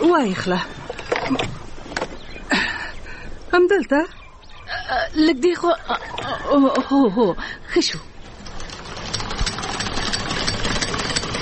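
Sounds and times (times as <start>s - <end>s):
speech: 0.1s - 1.6s, 3.5s - 4.2s, 4.9s - 8.1s
sewing machine running for home tailoring: 8.3s - 11.4s.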